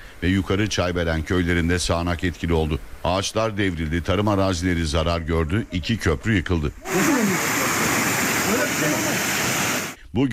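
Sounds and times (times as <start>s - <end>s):
speech: 0.2s - 7.5s, 10.1s - 10.3s
flooding Yeşilırmak river rushing through Pazar in Tokat: 6.8s - 10.0s.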